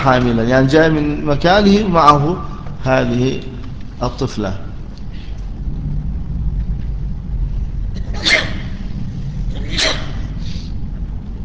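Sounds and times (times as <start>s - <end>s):
speech: 0.0s - 4.6s
low hum: 0.0s - 11.4s
sharp breathy sneezes: 8.0s - 8.9s, 9.5s - 10.7s.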